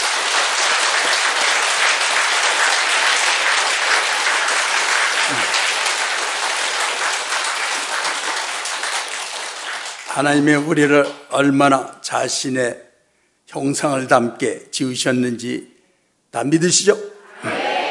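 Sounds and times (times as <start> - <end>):
crowd applauding: 0.0 - 11.2
speech: 10.2 - 12.8, 13.5 - 15.7, 16.3 - 17.5.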